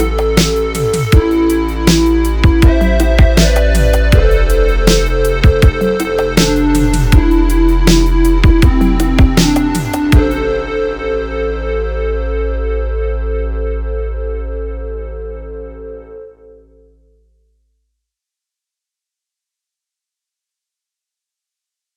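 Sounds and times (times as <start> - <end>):
hollow polyphonic synthesizer tone: 0.0 - 17.2.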